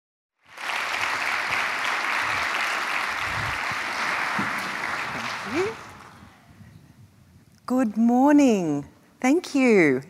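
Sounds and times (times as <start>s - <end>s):
audience applause at a women's international business event: 0.4s - 6.4s
speech: 5.5s - 5.8s, 7.7s - 10.0s.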